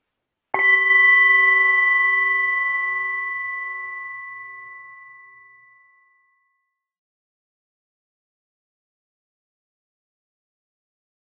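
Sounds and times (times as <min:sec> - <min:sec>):
soft meditation bell: 0:00.5 - 0:07.0.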